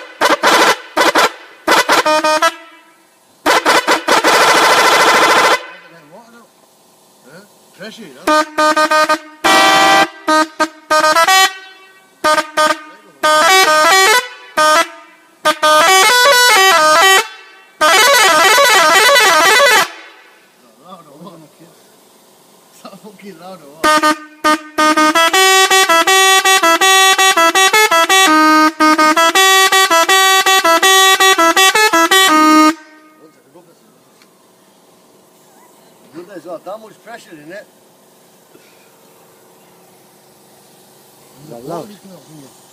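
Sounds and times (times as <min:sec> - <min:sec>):
Pakistani horn honking: 0:00.0 - 0:06.3, 0:07.8 - 0:20.6, 0:23.8 - 0:33.9.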